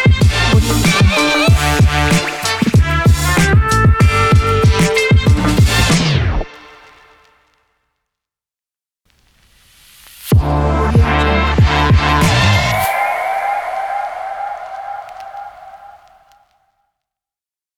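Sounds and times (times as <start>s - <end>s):
hip hop opener music: 0.0s - 6.2s, 10.4s - 16.3s.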